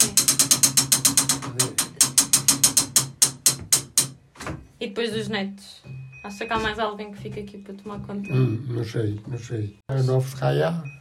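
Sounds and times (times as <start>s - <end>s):
tower clock mechanism being wound: 0.0s - 4.2s
speech: 4.8s - 10.9s.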